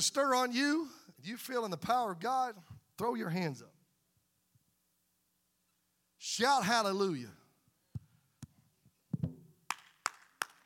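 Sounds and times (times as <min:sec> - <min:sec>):
speech: 0:00.0 - 0:03.8, 0:06.2 - 0:07.4
hands clapping: 0:09.7 - 0:10.6.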